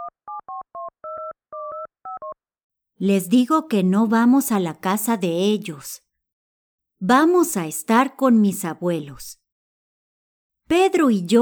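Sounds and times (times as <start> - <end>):
telephone keypad tones dialing to call parents: 0.0 - 2.4
speech: 3.0 - 6.0, 7.0 - 9.4, 10.7 - 11.3.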